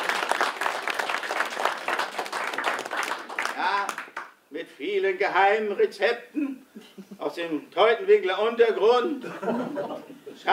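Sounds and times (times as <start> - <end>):
audience applause: 0.0 - 4.3
speech: 4.8 - 6.6, 7.2 - 10.5
laughter: 6.4 - 7.2, 9.2 - 10.5.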